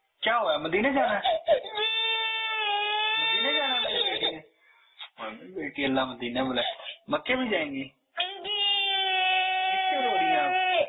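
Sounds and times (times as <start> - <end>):
speech: 0.2 - 1.8, 5.2 - 8.0
little girl crying: 1.3 - 4.3, 8.2 - 10.8.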